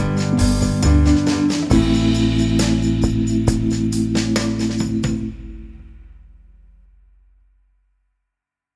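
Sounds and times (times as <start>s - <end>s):
guitar accompaniment for a grand finale: 0.0s - 5.1s.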